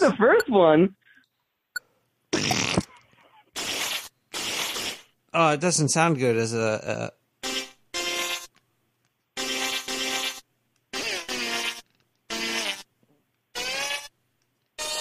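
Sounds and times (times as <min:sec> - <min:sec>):
speech: 0:00.0 - 0:01.0, 0:02.4 - 0:02.9, 0:05.3 - 0:07.2
loud buzzy fart noises: 0:02.3 - 0:05.2, 0:07.4 - 0:08.5, 0:09.4 - 0:12.9, 0:13.5 - 0:14.2, 0:14.8 - 0:14.9.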